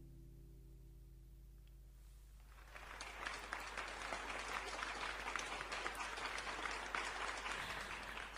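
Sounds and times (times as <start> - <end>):
small audience applauding after a sung performance: 2.4 - 8.3.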